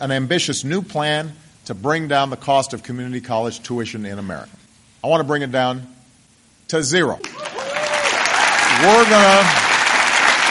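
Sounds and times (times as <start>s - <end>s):
speech: 0.0s - 6.0s, 6.7s - 7.5s, 8.8s - 9.6s
thunderous applause from audience: 7.4s - 10.5s.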